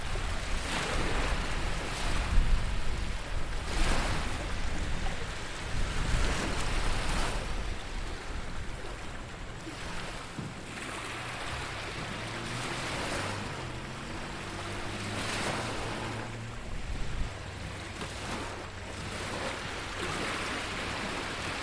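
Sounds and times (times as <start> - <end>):
surf waves breaking at Harvey's Beach: 0.0 - 21.6
low wavering motor hum: 8.1 - 21.6.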